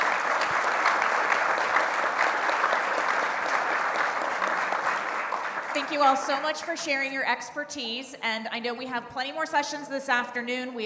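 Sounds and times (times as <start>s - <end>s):
audience applause: 0.0s - 6.8s
speech: 5.8s - 10.8s.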